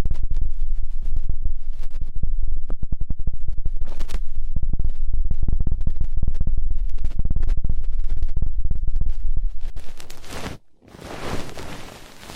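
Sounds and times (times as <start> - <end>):
dense rapid scratchy crackling from ear cleaning: 0.0 - 12.3
soft hiss: 9.9 - 12.3.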